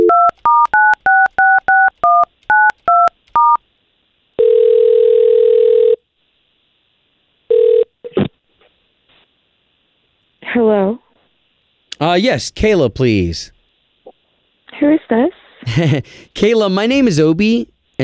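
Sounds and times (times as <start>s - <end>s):
telephone keypad tones dialing a call: 0.0s - 3.6s
telephone ringing tone: 0.0s - 3.6s, 4.4s - 6.0s, 7.5s - 7.9s
speech: 12.1s - 13.6s, 14.9s - 18.0s.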